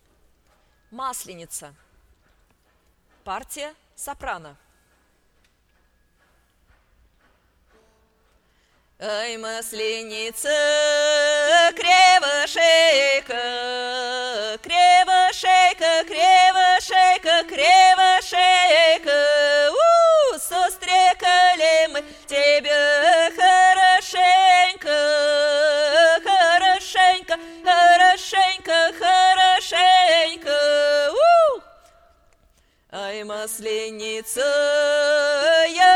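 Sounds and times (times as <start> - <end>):
soprano singing: 9.0 - 32.0, 32.9 - 35.9.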